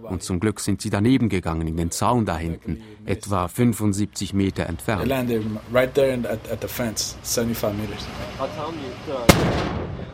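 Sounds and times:
speech: 0.0 - 10.1
outgoing US artillery fire: 9.3 - 10.1.

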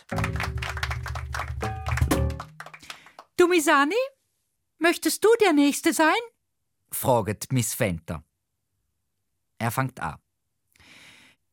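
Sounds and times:
class clapping: 0.0 - 3.4
speech: 3.5 - 4.2, 4.8 - 6.3, 6.9 - 8.3, 9.6 - 10.2.

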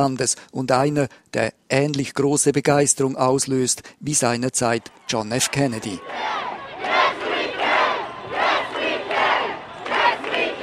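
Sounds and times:
speech: 0.0 - 6.5
large crowd cheering at election victory celebration: 4.7 - 10.6.

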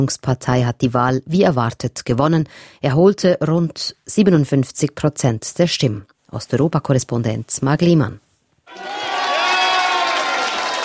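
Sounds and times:
speech: 0.0 - 9.2
GERB supporters shouting at party headquarters in Sofia: 8.7 - 10.8.

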